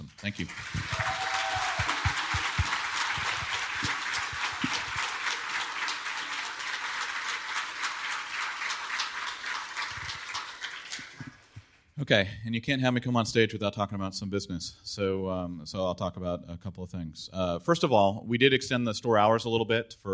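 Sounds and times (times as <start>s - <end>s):
crowd applauding: 0.0s - 11.7s
speech: 0.2s - 1.1s, 12.0s - 20.1s.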